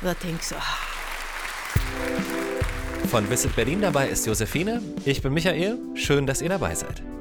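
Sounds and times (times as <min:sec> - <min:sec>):
speech: 0:00.0 - 0:00.9, 0:03.0 - 0:07.1
audience applause: 0:00.0 - 0:04.9.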